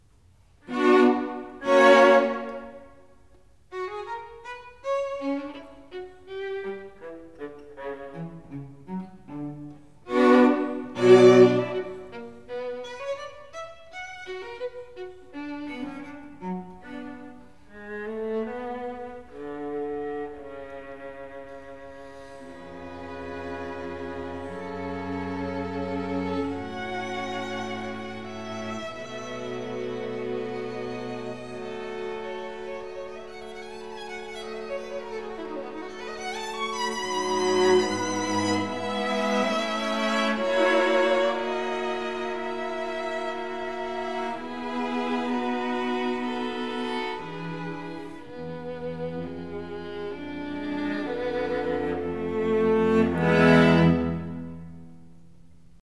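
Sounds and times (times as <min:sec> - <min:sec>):
string quartet playing allegro in C sharp minor: 0:00.5 - 0:55.6.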